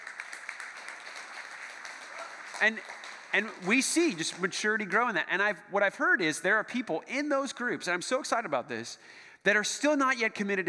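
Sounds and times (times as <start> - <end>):
audience applause: 0.0 - 4.5
speech: 2.6 - 10.6.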